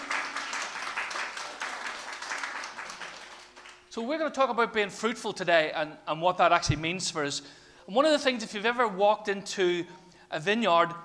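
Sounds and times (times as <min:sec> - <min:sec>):
audience clapping: 0:00.0 - 0:03.9
speech: 0:04.0 - 0:11.0.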